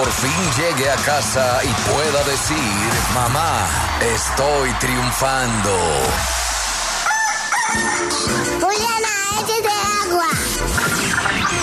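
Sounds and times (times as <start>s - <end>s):
speech: 0.0s - 6.4s, 7.7s - 11.6s
rooster crowing: 6.6s - 8.3s.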